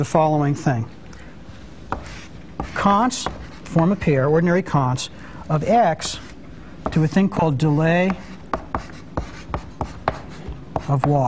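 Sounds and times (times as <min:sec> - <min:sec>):
speech: 0:00.0 - 0:01.0, 0:02.6 - 0:06.3, 0:06.9 - 0:08.3, 0:10.9 - 0:11.2
chalk tapping and scraping on a blackboard during a lecture: 0:01.9 - 0:04.1, 0:06.0 - 0:11.2.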